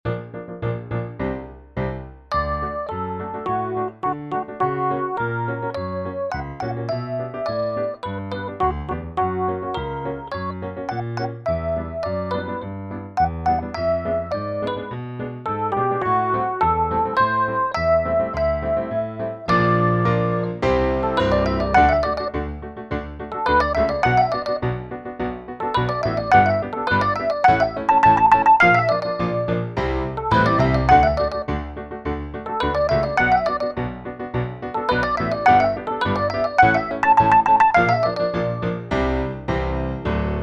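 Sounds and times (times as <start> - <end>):
piano: 0.0 - 40.4.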